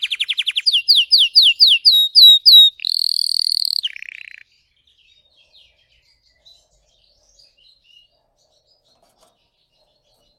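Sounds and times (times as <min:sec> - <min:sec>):
canary song: 0:00.0 - 0:10.3.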